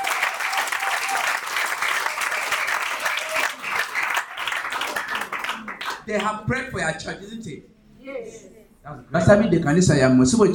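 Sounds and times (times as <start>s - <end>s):
audience applause: 0.0s - 6.3s
speech: 6.1s - 10.5s.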